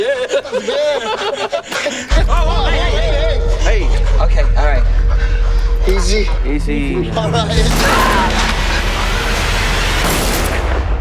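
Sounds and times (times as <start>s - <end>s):
laughter: 0.0s - 4.9s
speech: 5.9s - 8.6s
machine-gun fire from a film scene with apes: 7.6s - 10.9s.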